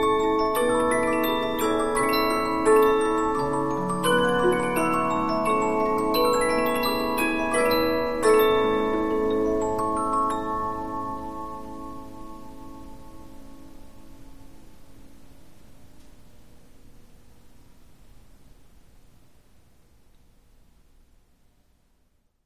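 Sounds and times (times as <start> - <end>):
Polyphon 15-inch disc music box playing: 0.0 - 13.0.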